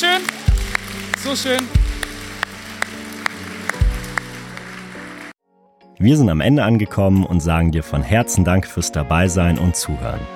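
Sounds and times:
audience applause: 0.0 - 5.4
speech: 1.2 - 1.8, 6.0 - 10.3.

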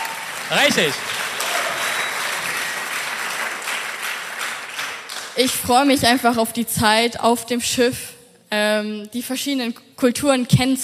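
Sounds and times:
audience applause: 0.0 - 5.4
speech: 0.5 - 1.2, 5.4 - 10.8.

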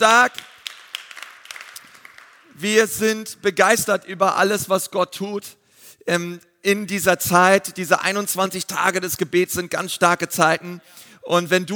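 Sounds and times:
speech: 0.0 - 0.5, 2.6 - 11.7
crowd applauding: 0.0 - 2.5.

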